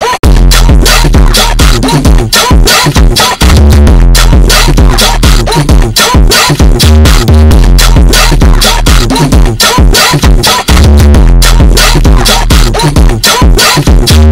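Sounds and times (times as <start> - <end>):
funk music: 0.3 - 14.2.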